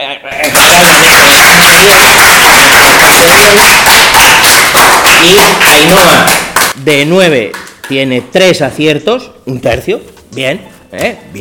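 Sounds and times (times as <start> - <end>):
group applauding: 0.4 - 8.1
speech: 3.4 - 3.8, 5.2 - 11.4.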